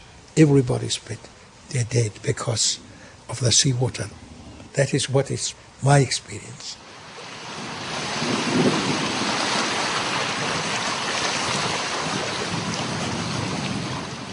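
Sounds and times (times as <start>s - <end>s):
speech: 0.4s - 6.8s
morning thunderstorm with rain on Funafuti Atoll: 8.0s - 14.3s.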